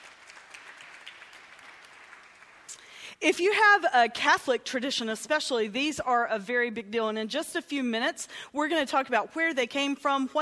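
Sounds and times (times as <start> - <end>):
audience clapping: 0.0 - 3.0
speech: 3.2 - 10.4.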